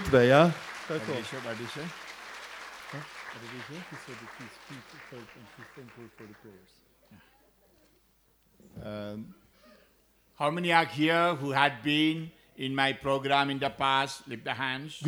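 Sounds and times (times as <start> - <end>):
seminar audience clapping: 0.0 - 6.8
speech: 0.1 - 2.0, 2.9 - 7.3, 8.6 - 9.4, 10.4 - 15.0.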